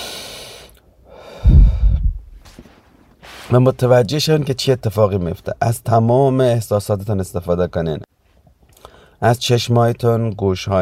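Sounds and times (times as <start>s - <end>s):
slow calming breathing: 0.0s - 2.6s
speech: 3.5s - 8.1s, 9.2s - 10.8s.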